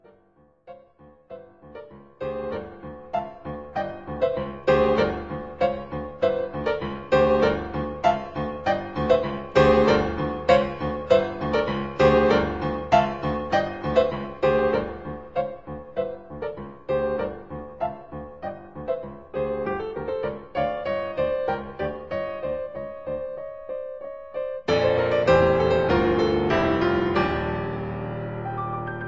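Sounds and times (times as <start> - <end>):
piano: 0.0 - 29.0.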